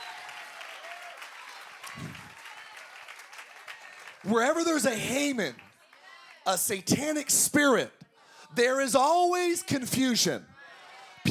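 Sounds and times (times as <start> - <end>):
audience clapping: 0.0 - 7.3
speech: 4.2 - 5.6, 6.4 - 10.5.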